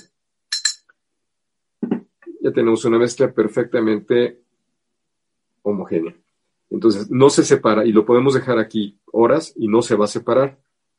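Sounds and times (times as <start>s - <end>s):
small spoon stirring liquid in a glass: 0.0s - 0.9s
speech: 2.4s - 4.4s, 5.6s - 10.7s.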